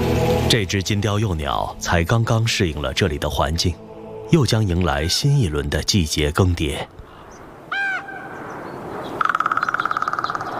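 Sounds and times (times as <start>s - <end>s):
speech: 0.5s - 7.0s
raven call: 7.1s - 10.5s.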